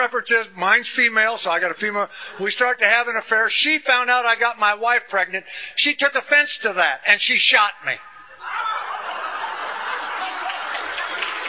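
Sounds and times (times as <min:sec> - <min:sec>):
speech: 0:00.0 - 0:08.7
laughter: 0:07.9 - 0:11.4
audience clapping: 0:09.1 - 0:11.4.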